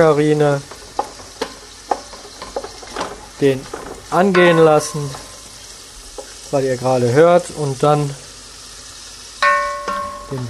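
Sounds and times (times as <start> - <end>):
speech: 0.0 - 0.7, 3.4 - 5.2, 6.5 - 8.2
diced bacon and onions sizzling in a pan: 0.0 - 10.4.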